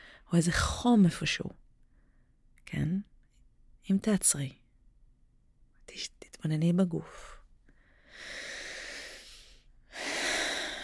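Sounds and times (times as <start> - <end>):
speech: 0.3 - 1.6, 2.7 - 3.1, 3.9 - 4.6, 5.9 - 7.4
breath drawn in through the nose and exhaled: 7.1 - 10.8.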